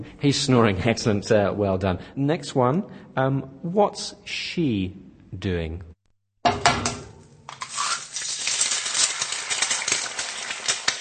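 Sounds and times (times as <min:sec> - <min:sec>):
speech: 0:00.0 - 0:05.9
eggs frying in a pan: 0:07.5 - 0:11.0.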